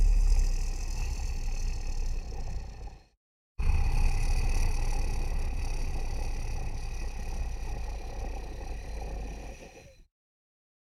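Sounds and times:
monster breathing: 0:00.0 - 0:10.1.

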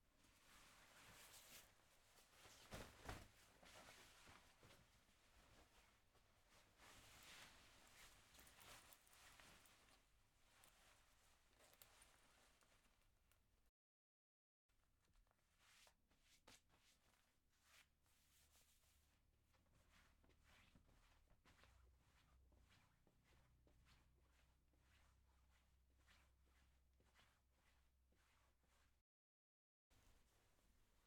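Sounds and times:
clothing fabric rustling: 0:00.1 - 0:13.2, 0:15.0 - 0:29.0.

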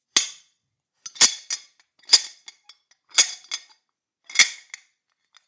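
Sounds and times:
metal clinking: 0:00.2 - 0:00.4, 0:01.1 - 0:02.4, 0:03.2 - 0:03.6, 0:04.4 - 0:04.7.

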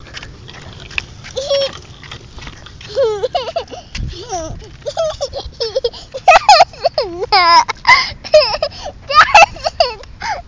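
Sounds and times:
laughing: 0:01.3 - 0:01.9, 0:02.8 - 0:10.4.

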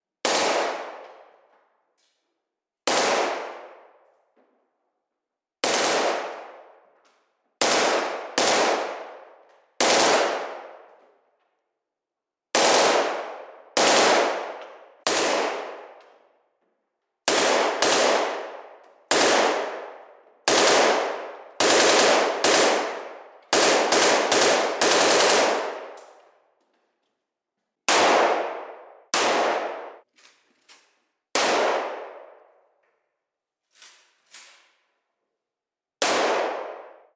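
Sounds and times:
Kalashnikov machine gun firing indoors: 0:00.2 - 0:02.0, 0:02.8 - 0:11.7, 0:12.3 - 0:26.6, 0:27.7 - 0:30.1, 0:31.2 - 0:32.8, 0:36.0 - 0:37.1.

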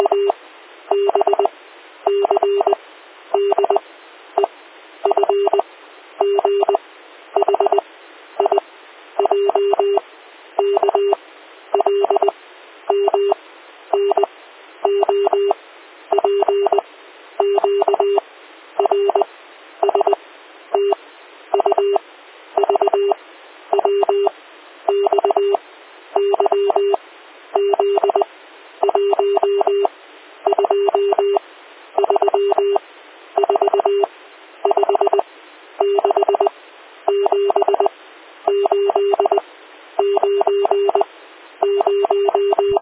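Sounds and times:
Morse code alphabet beeps: 0:00.0 - 0:01.5, 0:02.1 - 0:02.8, 0:03.4 - 0:03.8, 0:05.1 - 0:05.6, 0:06.2 - 0:06.8, 0:07.4 - 0:07.8, 0:09.2 - 0:10.0, 0:10.6 - 0:11.2, 0:11.8 - 0:12.3, 0:12.9 - 0:13.4, 0:14.0 - 0:16.8, 0:17.4 - 0:18.2, 0:18.8 - 0:20.2, 0:20.8 - 0:21.0, 0:21.6 - 0:22.0, 0:22.6 - 0:24.3, 0:24.9 - 0:25.6, 0:26.2 - 0:27.0, 0:27.6 - 0:29.9, 0:30.5 - 0:31.4, 0:32.0 - 0:32.8, 0:33.4 - 0:35.2, 0:35.8 - 0:36.5, 0:37.1 - 0:37.9, 0:38.5 - 0:39.4, 0:40.0 - 0:42.7.

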